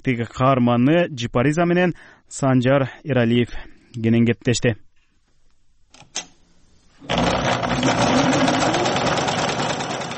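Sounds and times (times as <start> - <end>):
speech: 0.0 - 4.9
sewing machine clattering during home tailoring work: 7.0 - 10.1.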